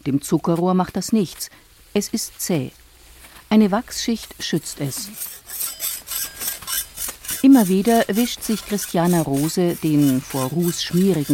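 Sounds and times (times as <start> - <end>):
speech: 0.0 - 2.8, 3.5 - 5.7, 7.4 - 11.3
blunt knife being sharpened: 5.0 - 11.3.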